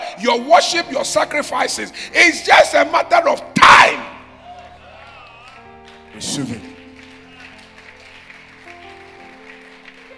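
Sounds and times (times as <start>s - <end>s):
speech: 0.2s - 4.1s, 6.2s - 6.7s
audience clapping: 4.6s - 10.1s.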